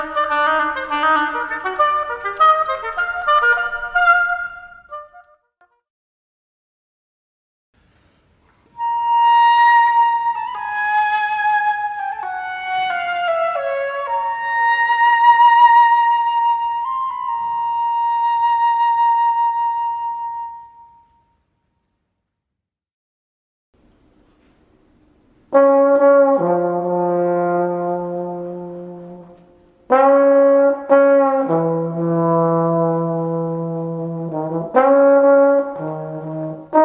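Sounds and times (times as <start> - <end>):
wind instruments: 0.0 - 5.3, 8.7 - 21.2, 25.5 - 36.8.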